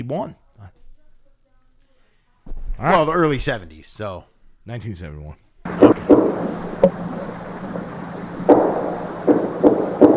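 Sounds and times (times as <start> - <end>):
speech: 0.0 - 0.4, 2.8 - 6.0
wood knocks in the woods: 5.7 - 10.1.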